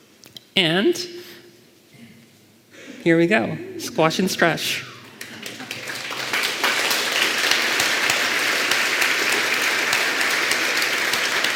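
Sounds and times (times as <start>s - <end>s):
speech: 0.6s - 1.3s, 3.0s - 4.9s
audience applause: 5.0s - 11.5s.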